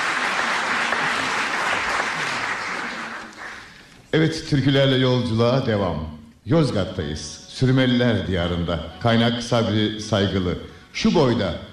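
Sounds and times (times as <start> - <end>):
applause for folk musicians: 0.0 - 3.9
speech: 4.1 - 11.7.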